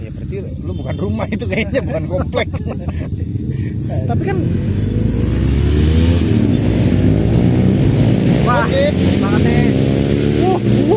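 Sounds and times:
speech: 0:00.3 - 0:04.8, 0:08.5 - 0:10.9
laughter: 0:01.0 - 0:04.0
sport motorcycles passing by, revving: 0:04.2 - 0:10.9.

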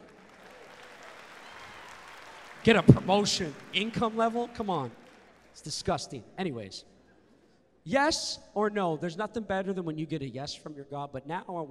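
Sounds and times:
clapping applause: 0:00.0 - 0:05.7
speech: 0:02.6 - 0:05.0, 0:05.6 - 0:06.9, 0:07.8 - 0:11.6.

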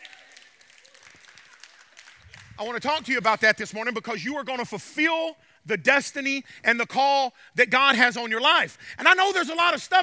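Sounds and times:
one person's light golf clap: 0:00.0 - 0:02.7
speech: 0:02.6 - 0:10.0.

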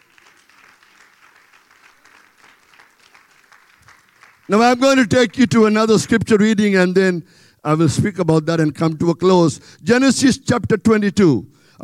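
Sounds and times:
audience hand clapping applause: 0:00.0 - 0:06.4
speech: 0:04.5 - 0:11.8.

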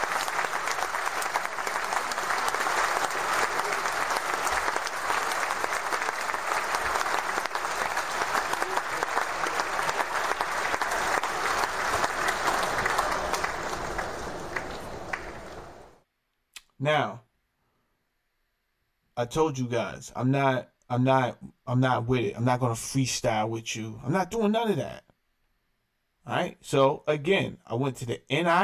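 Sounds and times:
audience applause: 0:00.0 - 0:16.0
speech: 0:19.2 - 0:25.0, 0:26.3 - 0:28.6.

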